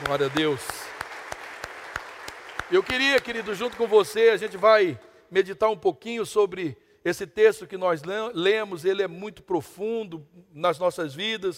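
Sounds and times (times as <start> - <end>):
crowd applause: 0.0 - 4.6
rhythmic sharp claps: 0.0 - 5.0
speech: 0.1 - 0.8, 2.7 - 11.5.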